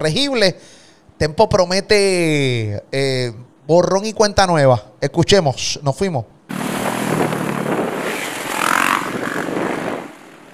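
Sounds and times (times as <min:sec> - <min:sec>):
speech: 0:00.0 - 0:06.4
motorcycle engines starting and revving: 0:06.5 - 0:10.5.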